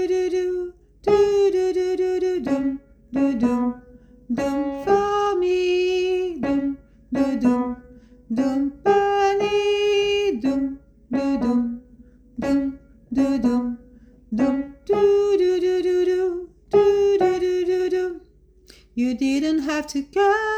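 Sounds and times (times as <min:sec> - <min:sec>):
soprano voice: 0:00.0 - 0:20.5.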